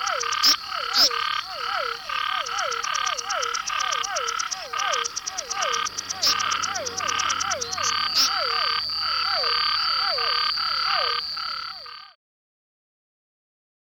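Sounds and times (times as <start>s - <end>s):
constant high tone: 0.0s - 12.2s
silver-adorned treefrog chorus: 0.0s - 12.2s
sharp clicks: 2.7s - 7.9s.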